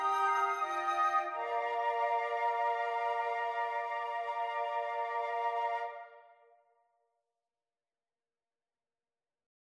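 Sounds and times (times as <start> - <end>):
flute quartet playing: 0.0 - 5.9.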